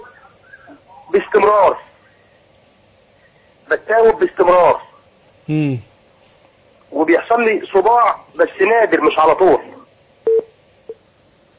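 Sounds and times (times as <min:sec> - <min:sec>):
speech: 0:01.3 - 0:01.9, 0:03.7 - 0:04.9, 0:05.5 - 0:05.9, 0:06.9 - 0:09.8
telephone beeps on a disconnected call-in line: 0:10.3 - 0:10.5.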